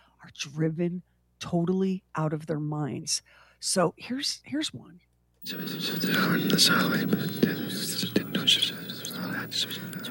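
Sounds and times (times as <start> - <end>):
speech: 0.3 - 10.0
people whispering nearby: 5.4 - 10.0.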